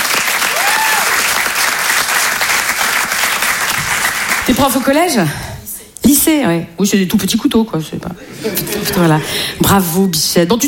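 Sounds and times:
audience applause: 0.0s - 4.9s
speech: 4.6s - 5.5s, 6.2s - 10.6s
laughter: 8.2s - 9.4s.

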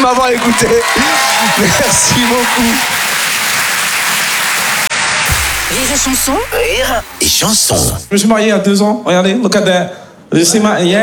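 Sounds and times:
audience applause: 0.0s - 8.1s
speech: 0.3s - 3.1s, 5.7s - 11.0s.

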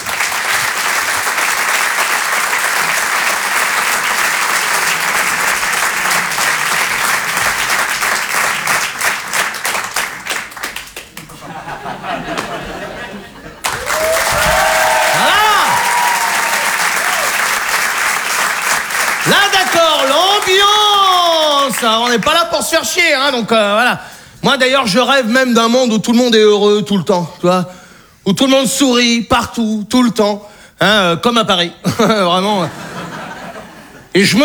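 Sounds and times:
audience applause: 0.0s - 22.4s
laughter: 11.2s - 17.3s, 31.9s - 34.2s
high whoops: 13.7s - 17.6s
speech: 21.8s - 32.8s, 34.1s - 34.4s.

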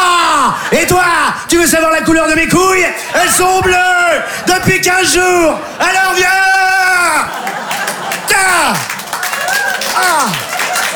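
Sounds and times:
speech: 1.0s - 7.6s, 10.0s - 10.5s
laughter: 5.6s - 10.9s
audience applause: 7.2s - 10.9s.

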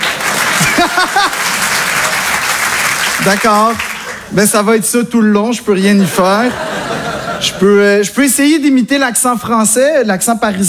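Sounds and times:
laughter: 0.0s - 4.2s, 6.0s - 7.8s
audience applause: 0.0s - 4.4s
speech: 3.2s - 10.6s.

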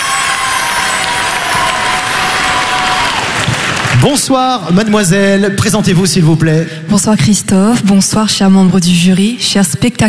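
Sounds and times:
cheers and whoops: 0.0s - 3.6s
large audience applauding: 0.0s - 4.4s
speech: 4.0s - 10.0s.

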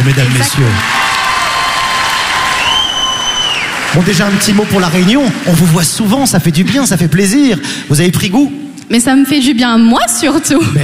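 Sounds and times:
audience applauding and cheering for a Miss France 2024 titleholder: 0.0s - 6.4s
speech: 0.1s - 1.2s, 3.9s - 10.8s.

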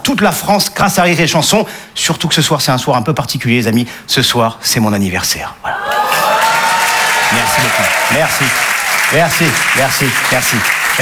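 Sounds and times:
speech: 0.0s - 6.1s, 7.3s - 11.0s
crowd applause: 5.7s - 11.0s.

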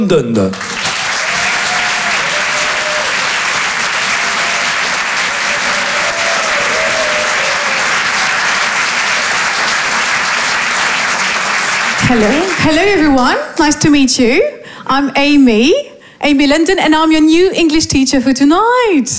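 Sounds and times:
speech: 0.0s - 0.7s, 12.1s - 19.1s
audience clapping to welcome a performer onto the stage: 0.3s - 13.8s
faint audience cheers: 0.6s - 12.7s.

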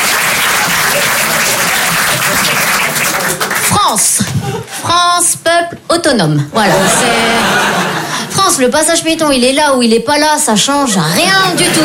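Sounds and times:
audience applause: 0.0s - 3.9s
speech: 3.8s - 4.2s, 4.8s - 7.5s, 8.5s - 11.8s
laughter: 6.6s - 8.4s, 11.2s - 11.8s.

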